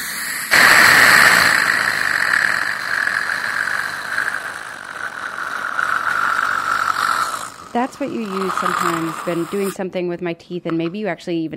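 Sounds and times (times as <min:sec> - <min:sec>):
dental suction straw running: 0:00.0 - 0:09.8
speech: 0:07.7 - 0:11.5.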